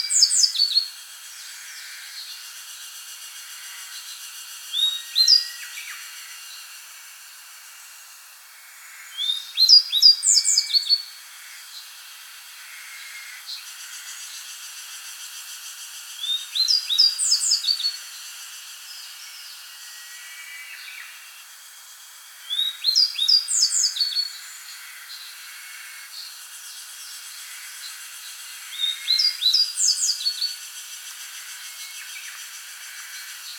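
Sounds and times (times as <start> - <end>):
grey bunting song: 0.0 - 2.5, 3.9 - 6.7, 9.1 - 11.9, 16.2 - 21.3, 22.4 - 25.4, 26.1 - 30.7, 31.6 - 33.5
hiss: 0.1 - 33.5.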